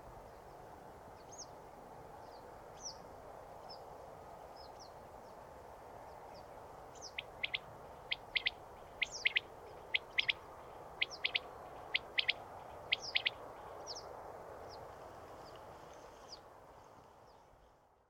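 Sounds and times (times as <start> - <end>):
high chirps from other birds: 7.0 - 10.4, 11.0 - 13.4
common quail call: 7.2 - 10.4, 11.0 - 13.4.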